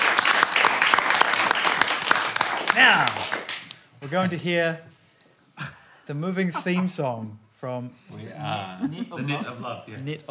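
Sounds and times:
crowd clapping: 0.0s - 3.9s
speech: 2.8s - 3.4s, 4.0s - 4.9s, 5.6s - 10.2s
laughter: 5.6s - 7.2s, 8.6s - 10.0s.

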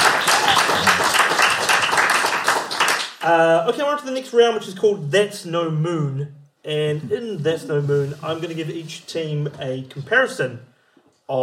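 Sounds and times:
scattered cheers: 0.0s - 1.6s
crowd applause: 0.0s - 3.2s
speech: 3.2s - 10.7s, 11.3s - 11.4s.

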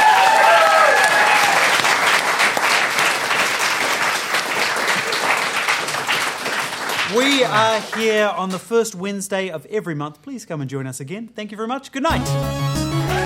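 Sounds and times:
audience round of applause: 0.0s - 8.3s
speech: 7.5s - 13.2s.

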